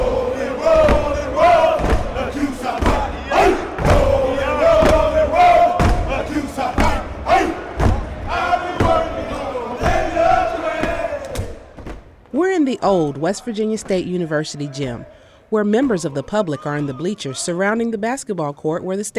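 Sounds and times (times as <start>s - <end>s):
loud group chanting at a college step show: 0.0s - 11.8s, 12.8s - 17.6s
rhythmic stomping at a college step show: 0.0s - 15.2s
speech: 12.8s - 19.1s.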